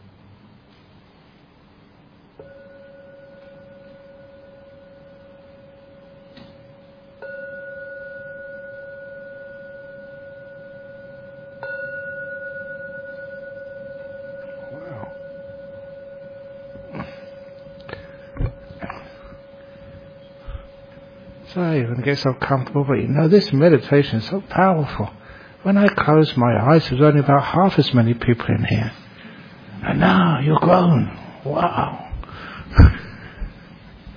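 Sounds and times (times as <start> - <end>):
meditation bell ringing: 2.4 - 27.6
speech: 21.6 - 29.0, 29.8 - 32.0.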